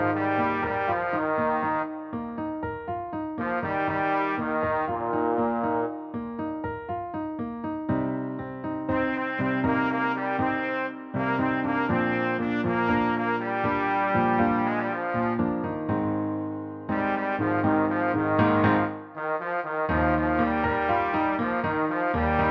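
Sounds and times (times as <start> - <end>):
piano melody: 0.0 - 22.5.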